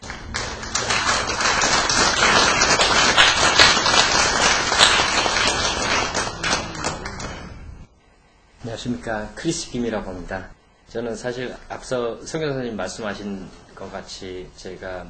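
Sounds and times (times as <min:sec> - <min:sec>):
audience applause welcoming a speaker: 0:00.0 - 0:07.6
speech: 0:08.8 - 0:15.0.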